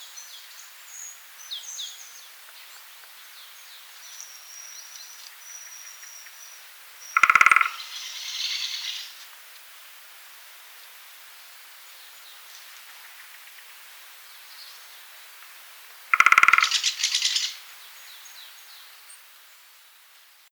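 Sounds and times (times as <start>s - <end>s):
great spotted woodpecker giving sharp kik calls: 7.1s - 9.2s, 16.1s - 17.6s.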